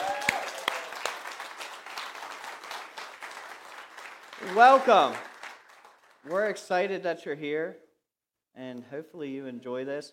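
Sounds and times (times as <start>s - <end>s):
audience applauding a newcomer: 0.0s - 6.6s
speech: 4.5s - 5.3s, 6.2s - 7.9s, 8.6s - 10.1s.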